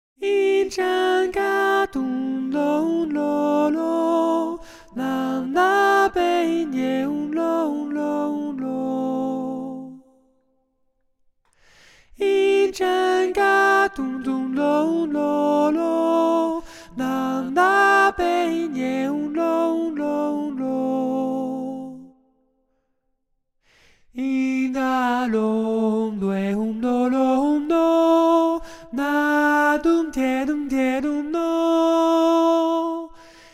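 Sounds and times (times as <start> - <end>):
soprano singing: 0.2 - 10.0, 12.2 - 22.1, 24.2 - 33.5.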